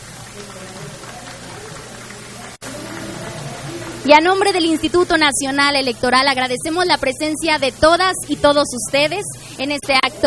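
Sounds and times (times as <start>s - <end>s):
audience applause: 0.0s - 5.7s
speech: 0.4s - 1.3s, 4.0s - 10.2s.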